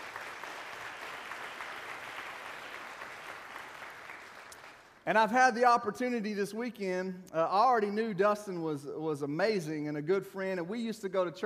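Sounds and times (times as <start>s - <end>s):
audience applause, hand clapping: 0.0s - 5.0s
speech: 5.0s - 11.4s.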